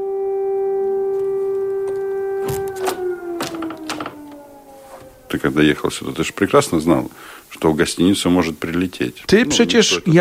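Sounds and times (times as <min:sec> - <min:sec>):
air raid siren wailing: 0:00.0 - 0:07.4
speech: 0:05.4 - 0:10.1.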